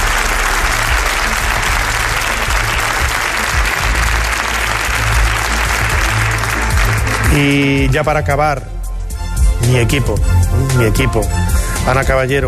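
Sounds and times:
audience applause: 0.0 - 7.8
speech: 7.4 - 8.8, 9.6 - 12.4.

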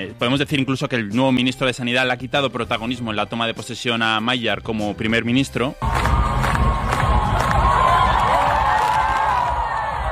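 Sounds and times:
speech: 0.0 - 6.2
crowd on the steps of the Hungarian Parliament cheering and whooping: 5.8 - 10.1.

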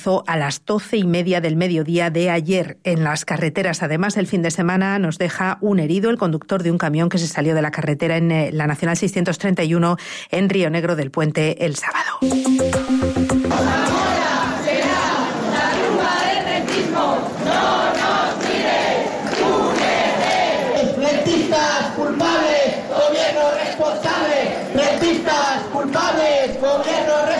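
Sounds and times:
speech: 0.0 - 13.9
protest crowd chanting and shouting in the street: 13.5 - 27.3.

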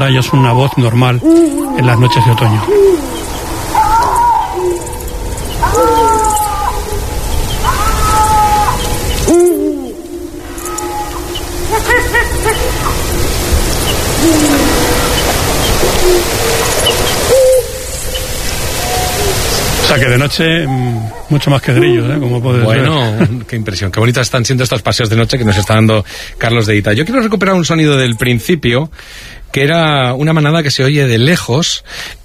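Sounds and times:
speech: 0.0 - 3.3, 19.9 - 32.2
lynx yowling at night: 0.0 - 23.1, 25.3 - 25.9
steady hiss: 0.0 - 32.2.

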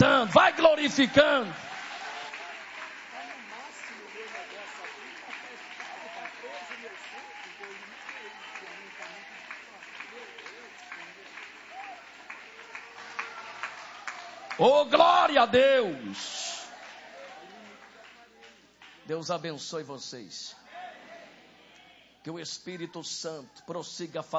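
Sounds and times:
audience applause: 0.0 - 19.0
speech: 0.2 - 1.7, 14.6 - 16.4, 19.1 - 20.6, 22.2 - 24.3.

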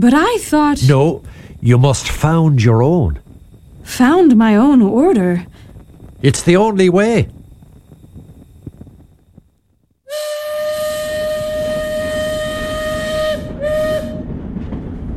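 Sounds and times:
speech: 0.0 - 3.2, 3.9 - 5.6, 6.2 - 7.4
train: 0.0 - 9.1, 10.1 - 15.1.

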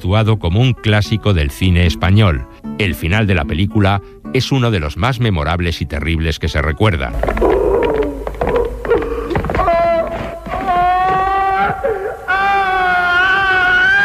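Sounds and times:
speech: 0.0 - 7.5
condemned man screaming: 7.2 - 14.0
condemned man sobbing: 7.4 - 14.0.

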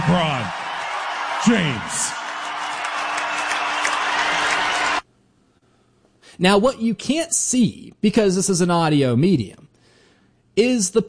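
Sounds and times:
arena crowd ovation, standing and clapping: 0.0 - 5.0
speech: 0.1 - 0.6, 1.4 - 2.2, 6.4 - 9.7, 10.6 - 11.0.

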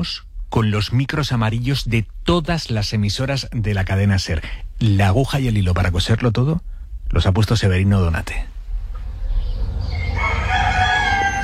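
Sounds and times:
speech: 0.0 - 8.6
roosters crowing in farmyard: 9.4 - 11.4.

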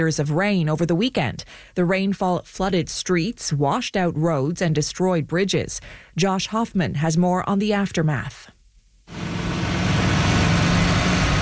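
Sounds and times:
speech: 0.0 - 9.4
bulldozers repairing damaged roadways: 9.1 - 11.4.

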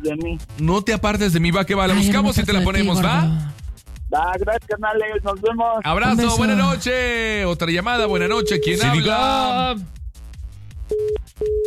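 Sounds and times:
speech: 0.0 - 10.0
phone line busy-tone beeps after a caller hangs up: 8.1 - 9.5, 10.9 - 11.6.

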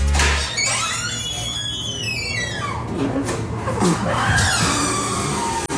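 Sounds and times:
squeaky door opening: 0.2 - 3.0, 4.2 - 5.6
speech: 3.0 - 4.6.

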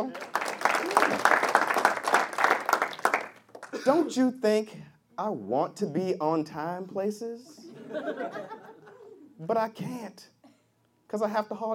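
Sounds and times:
speech: 0.0 - 0.4, 3.8 - 8.6, 9.4 - 10.4, 11.1 - 11.7
audience applause: 0.0 - 3.8
laughter: 7.6 - 9.3.

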